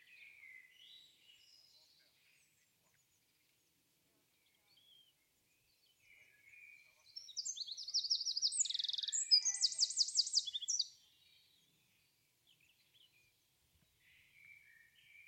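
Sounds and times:
bird song with buzzy trills: 0.0 - 15.2.

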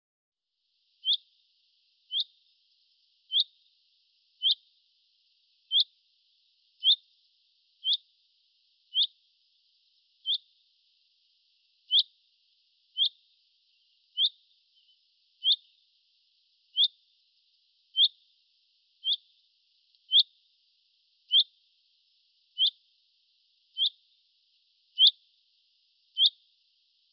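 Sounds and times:
bird trills: 1.0 - 1.2, 2.1 - 2.3, 3.3 - 3.5, 4.4 - 4.6, 6.8 - 7.0, 7.8 - 8.0, 8.9 - 9.1, 10.2 - 10.4, 13.0 - 13.2, 14.2 - 15.7, 16.8 - 17.0, 18.0 - 18.2, 19.0 - 19.2, 20.1 - 20.3, 22.6 - 22.8, 23.8 - 24.0, 25.0 - 25.2, 26.2 - 26.4.

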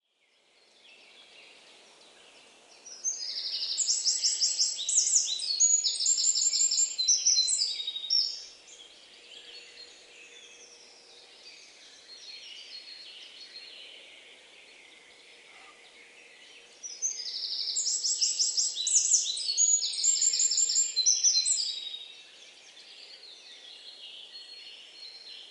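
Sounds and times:
bird chirping song: 0.0 - 25.5.

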